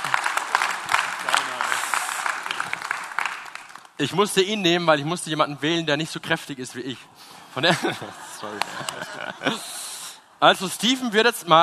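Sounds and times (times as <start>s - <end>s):
audience applause: 0.0s - 4.0s
speech: 4.0s - 9.8s, 10.4s - 11.6s
laughter: 7.6s - 9.9s.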